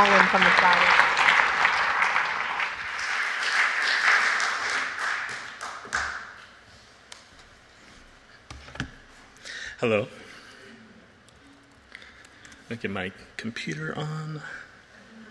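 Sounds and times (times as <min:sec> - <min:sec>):
church fellowship audience applauding to welcome the next speaker: 0:00.0 - 0:06.4
speech: 0:09.8 - 0:10.2, 0:12.7 - 0:14.7.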